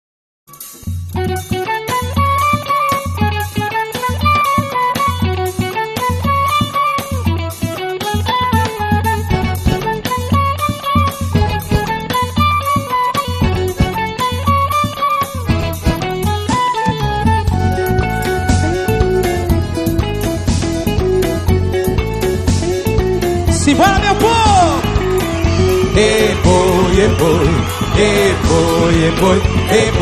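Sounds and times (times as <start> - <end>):
forró music: 0.5 - 29.9.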